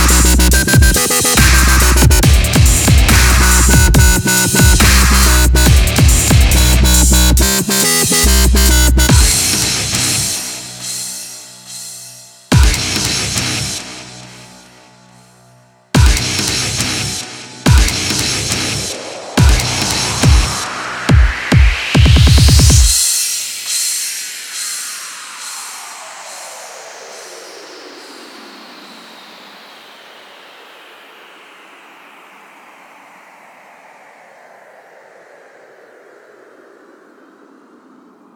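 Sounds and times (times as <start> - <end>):
dubstep remix: 0.0 - 13.8, 16.0 - 26.6.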